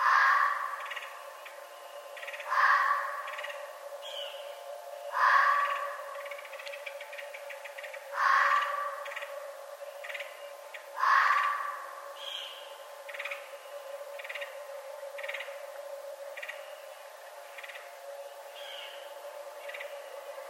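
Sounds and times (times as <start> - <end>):
red fox screaming: 2.5 - 3.2, 5.1 - 6.0, 8.2 - 9.0, 11.0 - 11.8.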